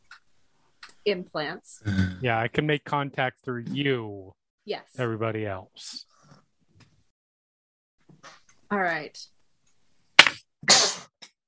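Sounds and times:
speech: 1.0s - 6.1s, 8.2s - 9.4s
person sneezing: 1.9s - 2.3s, 10.6s - 11.2s.

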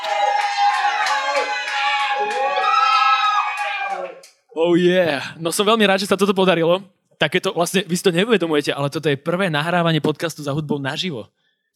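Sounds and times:
live audience applause: 0.0s - 4.3s
live audience whooping and cheering: 0.0s - 4.4s
speech: 4.6s - 11.7s.

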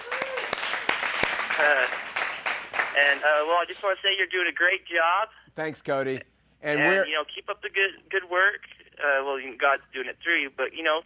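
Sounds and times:
cheers: 0.0s - 0.9s
crowd applauding: 0.0s - 3.9s
speech: 1.6s - 2.1s, 3.0s - 11.0s.

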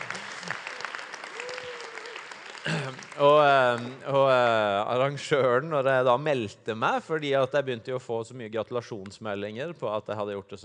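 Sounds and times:
audience clapping: 0.0s - 4.6s
speech: 2.6s - 10.6s.

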